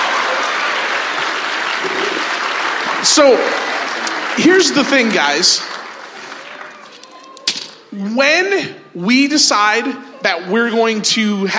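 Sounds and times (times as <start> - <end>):
audience applause: 0.0 - 7.4
speech: 3.0 - 3.7, 4.4 - 5.7, 8.0 - 11.5.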